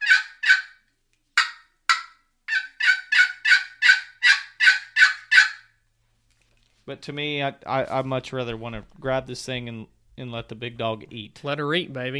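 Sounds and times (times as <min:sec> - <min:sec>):
turkey box call worked in raspy yelps: 0:00.0 - 0:00.8, 0:01.4 - 0:05.7
speech: 0:06.9 - 0:12.1.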